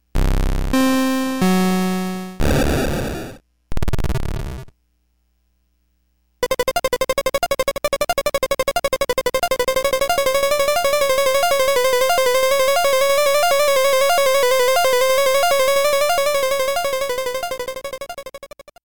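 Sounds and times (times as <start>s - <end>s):
crappy synth: 0.2s - 3.0s, 6.4s - 18.6s.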